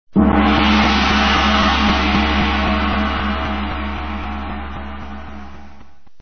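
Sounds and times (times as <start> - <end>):
gong: 0.2 - 6.1.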